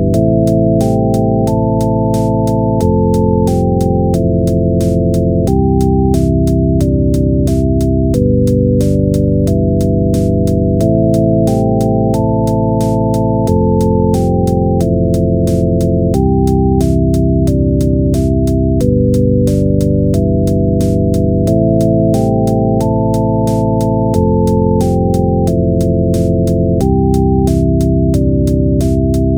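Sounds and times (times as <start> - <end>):
game background music: 0.2 - 29.3.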